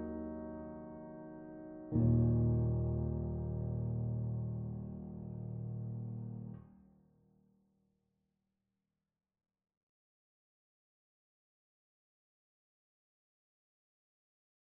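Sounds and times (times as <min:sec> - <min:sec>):
piano: 0:00.0 - 0:07.0.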